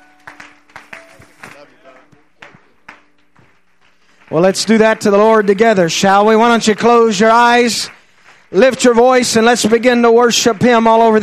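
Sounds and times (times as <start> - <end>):
sustained musical tone: 0.0 - 3.8
audience clapping rhythmically in appreciation: 0.0 - 11.2
speech: 4.3 - 11.2.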